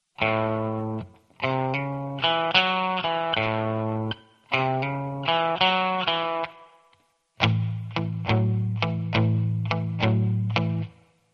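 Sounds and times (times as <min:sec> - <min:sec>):
rock guitar: 0:00.2 - 0:11.2.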